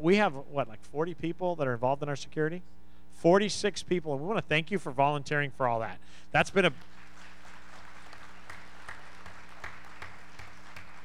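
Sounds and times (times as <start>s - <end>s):
speech: 0.0s - 6.9s
crowd applause: 6.6s - 11.0s.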